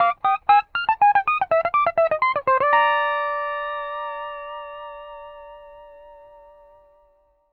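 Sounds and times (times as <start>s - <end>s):
country music loop at 120 BPM: 0.0s - 5.2s.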